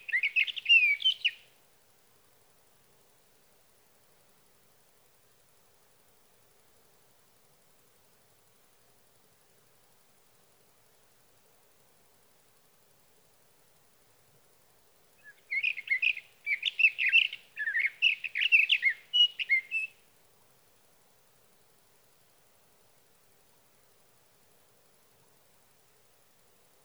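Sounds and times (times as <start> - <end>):
Sage thrasher singing at night: 0.0 - 1.4, 15.2 - 20.0.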